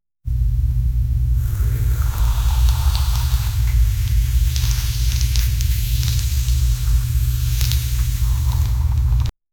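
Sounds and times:
hair moving softly: 1.4s - 9.3s.

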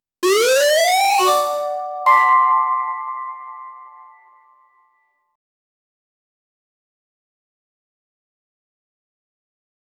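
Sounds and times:
2D jump game music: 0.2s - 4.7s.

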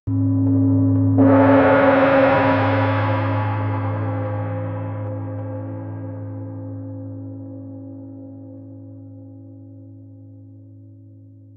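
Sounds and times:
drums: 0.1s - 7.2s.

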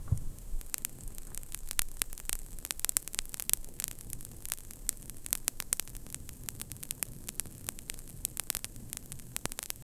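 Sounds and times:
strong crackling campfire flames: 0.0s - 9.9s.

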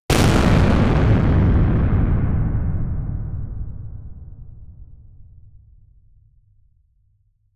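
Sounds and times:
deep boom of a cannon firing in a battle: 0.1s - 5.6s.

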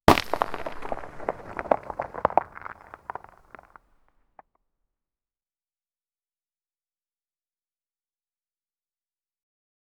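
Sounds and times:
huge rock rolling down from a hill: 0.1s - 3.7s.

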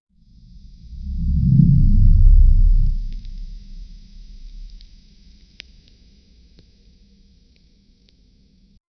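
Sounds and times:
ultra realistic organic body horror sounds: 0.4s - 5.8s.

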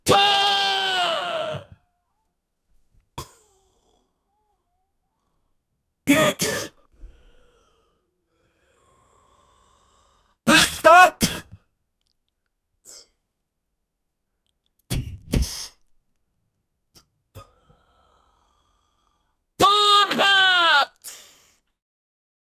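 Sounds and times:
person yelling while smoking weed: 0.0s - 1.7s, 10.5s - 11.4s, 19.6s - 21.1s.

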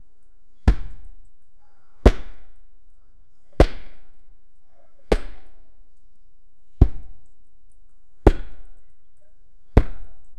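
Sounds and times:
intense shadow boxing: 0.6s - 1.1s, 2.0s - 2.6s, 3.5s - 4.2s, 5.1s - 5.6s, 8.2s - 8.8s, 9.8s - 10.2s.

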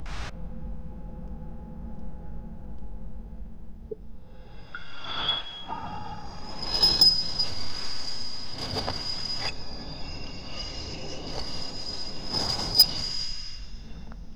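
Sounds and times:
cavern ambience: 0.0s - 14.2s.

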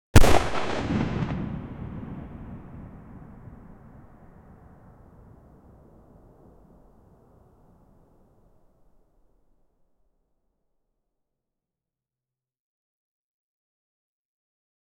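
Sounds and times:
152mm howitzer artillery shot: 0.2s - 7.6s.

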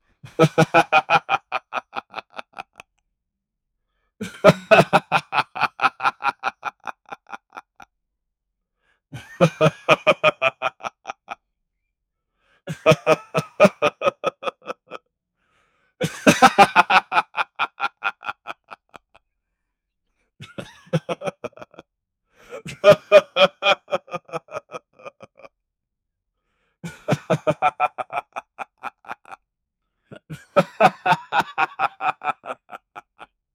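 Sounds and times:
man laughing: 0.3s - 2.8s, 4.2s - 7.8s, 9.2s - 11.4s, 12.7s - 15.0s, 16.0s - 19.2s, 20.4s - 21.8s, 22.4s - 25.5s, 26.8s - 29.4s, 30.1s - 33.3s.

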